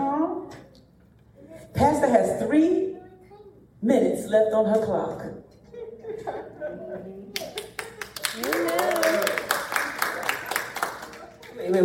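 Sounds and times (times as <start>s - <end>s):
speech: 1.8s - 3.0s, 3.8s - 5.5s
audience clapping: 7.4s - 11.8s.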